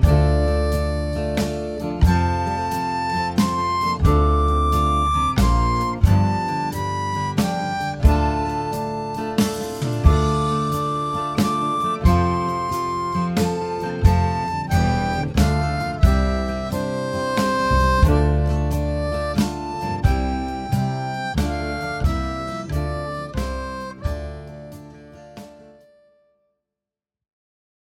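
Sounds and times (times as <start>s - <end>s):
harp: 0.0s - 25.6s.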